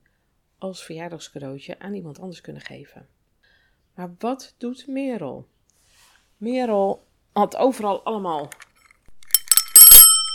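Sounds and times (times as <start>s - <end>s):
speech: 0.6s - 3.2s, 4.0s - 5.5s, 6.4s - 8.6s
bell ringing: 9.3s - 10.3s.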